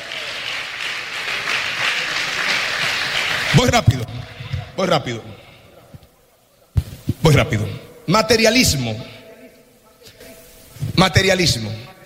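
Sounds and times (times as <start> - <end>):
crowd clapping: 0.0 - 4.8
speech: 3.6 - 4.1, 4.8 - 5.3, 7.2 - 9.1, 11.0 - 11.9.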